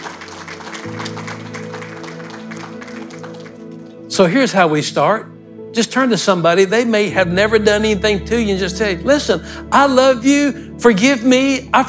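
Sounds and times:
audience clapping: 0:00.0 - 0:04.1
sustained low keyboard chord: 0:00.0 - 0:11.8
speech: 0:04.2 - 0:11.8.

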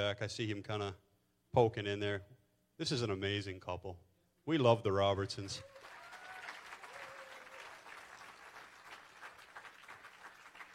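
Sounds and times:
speech: 0:00.0 - 0:05.7
audience applause: 0:05.6 - 0:10.7.

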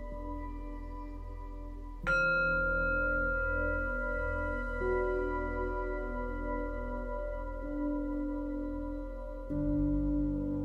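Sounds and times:
singing bowls ringing: 0:00.2 - 0:10.5.

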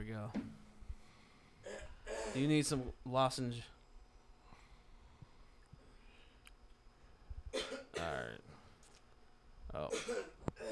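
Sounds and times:
speech: 0:00.0 - 0:00.5, 0:01.6 - 0:03.8, 0:09.7 - 0:10.7
coughing: 0:01.6 - 0:02.6, 0:07.5 - 0:08.4, 0:09.8 - 0:10.7.

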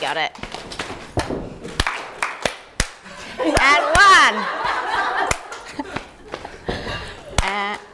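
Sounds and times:
speech: 0:00.0 - 0:00.9, 0:03.6 - 0:04.7
foot stamping: 0:00.4 - 0:03.0, 0:04.6 - 0:07.9
slapping: 0:00.4 - 0:07.9
rhythmic hand clapping: 0:01.7 - 0:04.1, 0:05.2 - 0:06.6, 0:07.3 - 0:07.9
laughter: 0:03.0 - 0:07.9.

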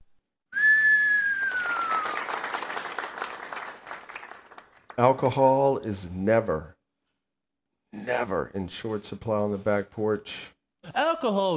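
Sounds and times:
whistling: 0:00.5 - 0:03.0
audience cheering: 0:00.6 - 0:04.6
applause: 0:01.0 - 0:05.2
speech: 0:05.0 - 0:06.8, 0:08.1 - 0:11.5.

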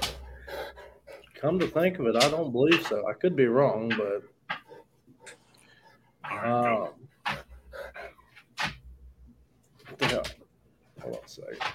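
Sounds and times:
big old dog panting: 0:00.0 - 0:01.9, 0:04.5 - 0:06.2, 0:07.2 - 0:08.6
speech: 0:01.4 - 0:04.4, 0:06.4 - 0:07.0, 0:11.0 - 0:11.7.

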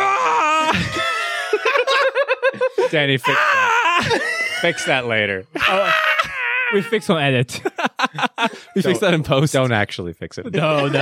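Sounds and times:
person imitating a blood-curdling scream: 0:00.0 - 0:01.0, 0:03.2 - 0:04.9, 0:05.6 - 0:07.2
laughter: 0:00.4 - 0:09.2, 0:10.4 - 0:11.0
speech: 0:00.7 - 0:01.1, 0:02.8 - 0:06.1, 0:06.7 - 0:11.0.

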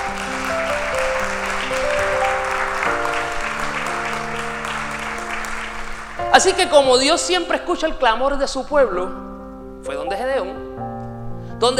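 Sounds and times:
audience applauding: 0:00.0 - 0:07.3
sustained organ or keyboard chords: 0:00.0 - 0:11.7
speech: 0:06.4 - 0:09.3, 0:11.6 - 0:11.7.

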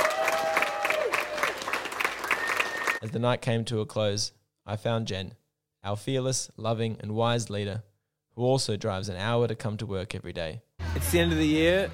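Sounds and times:
audience applause: 0:00.0 - 0:03.0
speech: 0:03.0 - 0:11.9.

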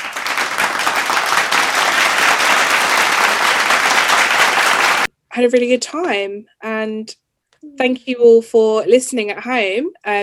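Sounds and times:
round of applause: 0:00.0 - 0:05.1
speech: 0:05.4 - 0:10.2.

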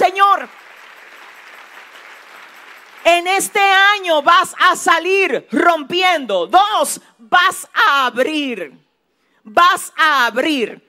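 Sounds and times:
audience applauding: 0:00.0 - 0:03.5
speech: 0:03.3 - 0:08.8, 0:09.4 - 0:10.8.

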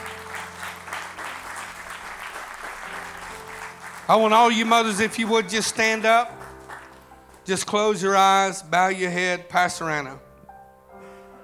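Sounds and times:
audience hand clapping: 0:00.0 - 0:07.5
speech: 0:04.1 - 0:06.4, 0:07.5 - 0:10.2.

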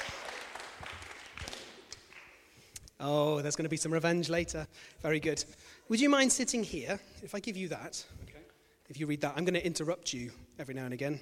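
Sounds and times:
audience applause: 0:00.0 - 0:02.4
speech: 0:03.0 - 0:08.3, 0:08.9 - 0:11.1.

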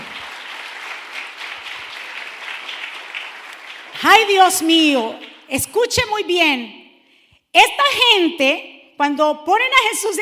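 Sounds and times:
loud audience applause: 0:00.0 - 0:04.1
speech: 0:04.0 - 0:06.8, 0:07.5 - 0:10.2.

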